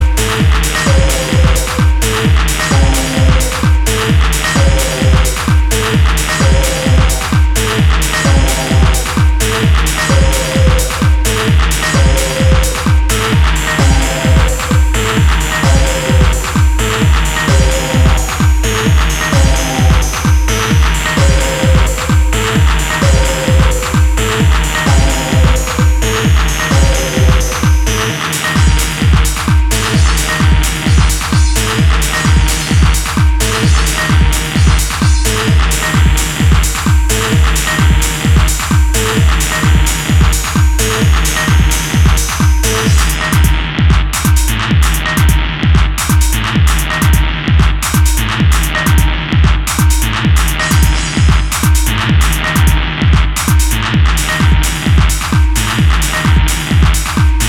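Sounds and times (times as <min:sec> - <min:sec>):
kick drums: 0:00.0 - 0:57.4.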